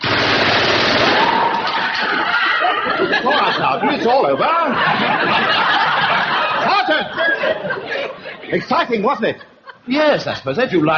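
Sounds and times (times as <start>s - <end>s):
rapid automatic gunfire from a firing exercise: 0.0s - 1.6s
laughter: 1.6s - 10.9s
speech: 3.6s - 5.9s, 8.5s - 10.9s.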